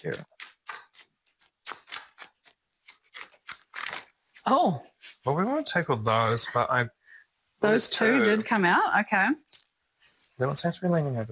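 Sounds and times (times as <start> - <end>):
speech: 0.0 - 0.4, 4.5 - 7.0, 7.6 - 9.4, 10.4 - 11.3
cards being handled for ASMR: 0.0 - 4.2.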